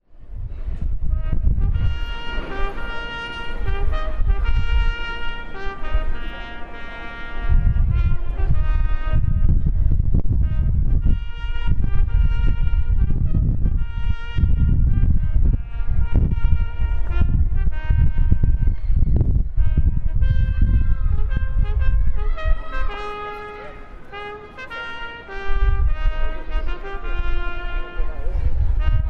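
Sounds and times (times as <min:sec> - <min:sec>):
trumpet call: 0:00.7 - 0:29.0.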